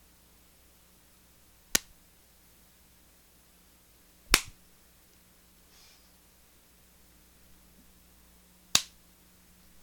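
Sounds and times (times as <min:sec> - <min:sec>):
slap: 0:04.3 - 0:04.6, 0:08.7 - 0:09.0.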